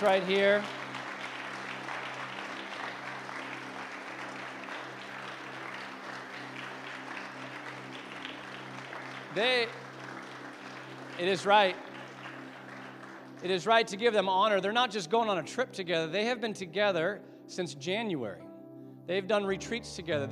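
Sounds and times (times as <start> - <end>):
speech: 0.0 - 0.8, 9.3 - 9.8, 11.2 - 11.8, 13.4 - 18.5, 19.1 - 20.2
audience clapping: 0.0 - 14.7.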